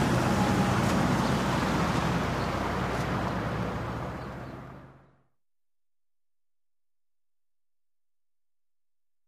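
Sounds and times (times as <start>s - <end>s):
street ambience after rain: 0.0s - 5.0s.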